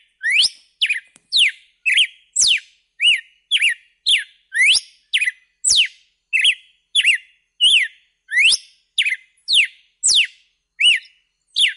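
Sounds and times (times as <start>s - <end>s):
red-cowled cardinal whistled song: 0.0s - 11.7s.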